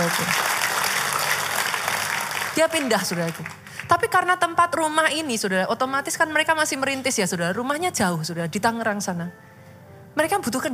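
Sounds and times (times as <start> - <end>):
enthusiastic audience applause: 0.0 - 3.9
speech: 0.1 - 0.5, 2.6 - 9.5, 10.2 - 10.7.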